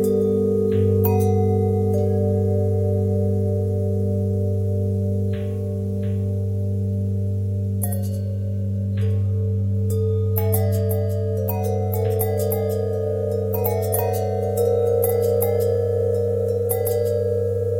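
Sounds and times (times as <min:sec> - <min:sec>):
long bell with pitch bend twist: 0:00.0 - 0:17.7.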